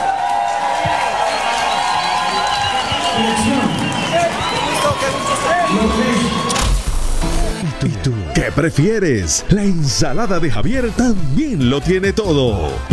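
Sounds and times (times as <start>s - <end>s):
crowd applause: 0.0s - 8.4s
crowd cheering: 0.0s - 9.9s
speech: 8.5s - 12.9s.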